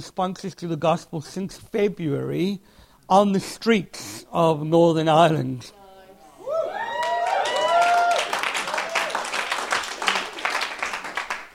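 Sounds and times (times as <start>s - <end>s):
speech: 0.0s - 5.8s
people whooping and cheering: 6.2s - 10.5s
audience clapping: 6.7s - 11.5s.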